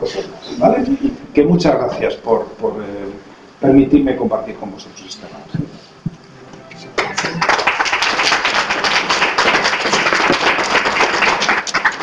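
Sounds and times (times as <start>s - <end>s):
speech: 0.0s - 5.6s
audience applause: 6.9s - 12.0s.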